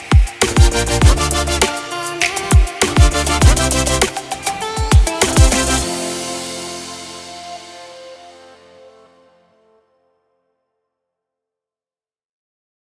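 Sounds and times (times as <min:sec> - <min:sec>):
uplifting electronic music: 0:00.0 - 0:09.8.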